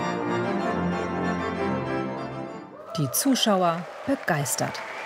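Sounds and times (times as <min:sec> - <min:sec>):
church organ playing film music: 0:00.0 - 0:02.7
speech: 0:03.0 - 0:04.9.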